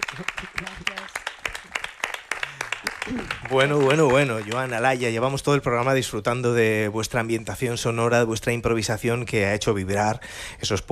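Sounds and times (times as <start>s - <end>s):
audience applause: 0.0s - 5.2s
speech: 0.1s - 1.3s, 2.8s - 10.8s.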